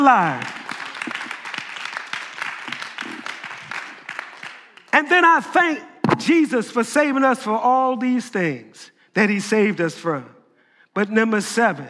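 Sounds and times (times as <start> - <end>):
speech: 0.0 - 0.6, 5.0 - 10.4, 11.0 - 11.8
audience clapping hands: 0.0 - 5.3.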